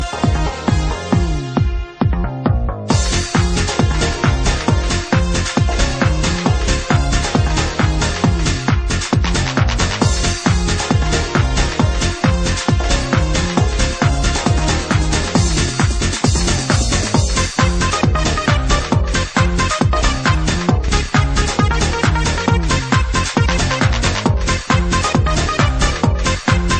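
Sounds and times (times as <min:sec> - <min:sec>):
DJ techno music: 0:00.0 - 0:26.7.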